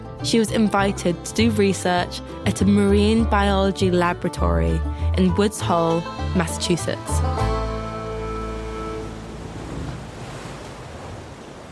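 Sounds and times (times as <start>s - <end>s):
speech: 0.2s - 7.5s
Atlantic Ocean waves lapping on rocky shore: 7.8s - 11.7s.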